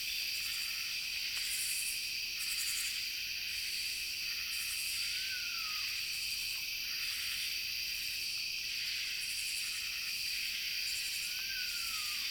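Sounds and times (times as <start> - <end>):
insect chorus: 0.0 - 12.2.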